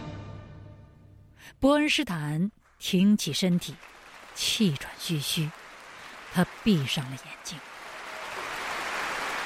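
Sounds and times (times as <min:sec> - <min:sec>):
speech: 0:01.6 - 0:05.6, 0:06.3 - 0:07.7
concert hall applause from a large crowd: 0:03.6 - 0:09.4.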